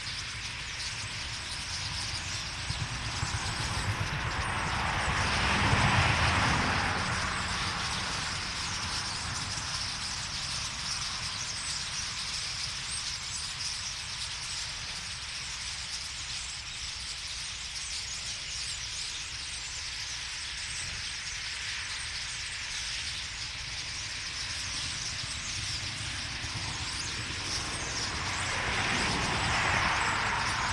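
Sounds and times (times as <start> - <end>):
common starling flock giving mixed squeaks, clicks and twitters: 0.0 - 30.7.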